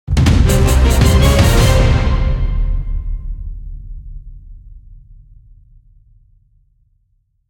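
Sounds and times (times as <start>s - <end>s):
death music sting: 0.3s - 3.4s.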